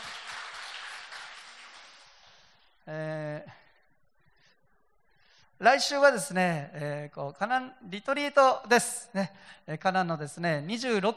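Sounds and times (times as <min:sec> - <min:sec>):
applause: 0:00.0 - 0:02.5
speech: 0:05.6 - 0:11.1.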